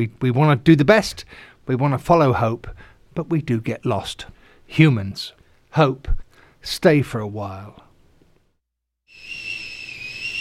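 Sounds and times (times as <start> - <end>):
speech: 0.0 - 7.8
kettle boiling and whistling: 9.1 - 10.4.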